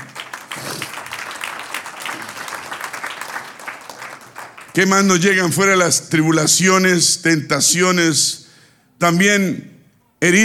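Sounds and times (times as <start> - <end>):
audience applause: 0.0 - 4.8
speech: 4.8 - 8.4, 9.0 - 10.4.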